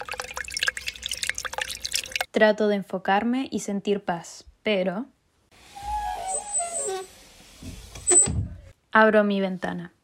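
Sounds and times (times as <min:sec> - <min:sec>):
water running and splashing while washing a face: 0:00.0 - 0:02.3
speech: 0:02.4 - 0:05.2, 0:09.0 - 0:10.0.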